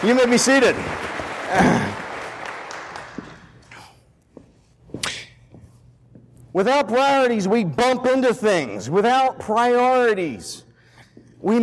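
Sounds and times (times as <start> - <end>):
speech: 0.0 - 1.9, 6.6 - 10.7, 11.4 - 11.6
audience applause: 0.0 - 3.7.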